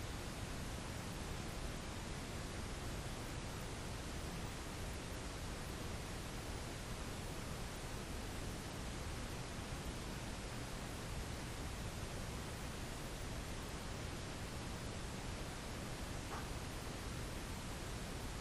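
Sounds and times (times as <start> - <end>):
static noise in a tattoo shop: 0.0 - 18.3.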